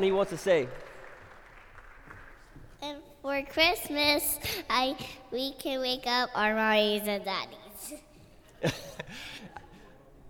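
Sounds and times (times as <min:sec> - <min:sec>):
speech: 0:00.0 - 0:00.9, 0:03.3 - 0:09.6
audience applause for children: 0:00.0 - 0:02.6.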